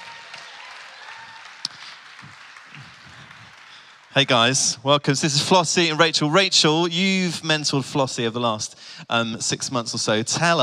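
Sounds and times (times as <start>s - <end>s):
audience applause for guests: 0.0s - 4.8s
speech: 4.2s - 10.6s.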